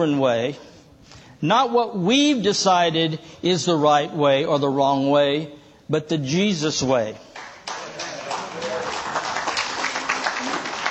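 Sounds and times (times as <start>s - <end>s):
speech: 0.0s - 7.3s
audience clapping: 7.3s - 10.8s.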